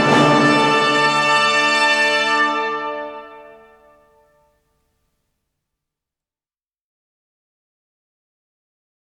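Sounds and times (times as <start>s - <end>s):
orchestral fanfare: 0.0s - 4.4s.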